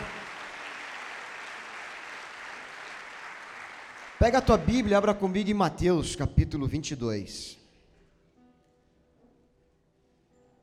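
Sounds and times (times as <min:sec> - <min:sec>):
audience applause: 0:00.0 - 0:05.1
speech: 0:04.2 - 0:07.6.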